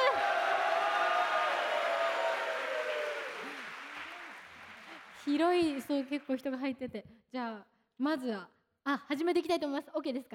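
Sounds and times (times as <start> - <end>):
audience applause: 0.0 - 6.4
speech: 5.2 - 10.3.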